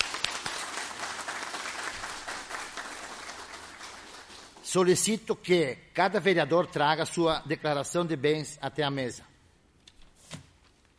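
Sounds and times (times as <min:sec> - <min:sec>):
audience applause: 0:00.0 - 0:04.6
speech: 0:04.7 - 0:09.3.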